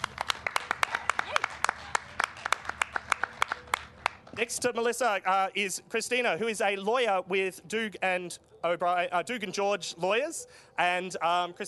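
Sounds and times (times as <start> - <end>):
small group applauding: 0.0 - 4.4
speech: 4.4 - 11.6.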